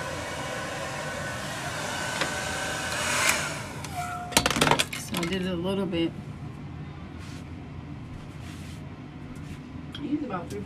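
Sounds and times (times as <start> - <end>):
hair dryer blow-drying natural hair: 0.0 - 4.3
speech: 5.2 - 6.3, 10.3 - 10.6.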